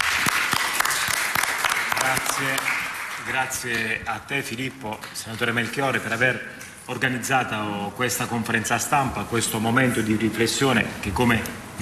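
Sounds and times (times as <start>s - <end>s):
audience applause: 0.0s - 3.6s
speech: 2.4s - 11.8s.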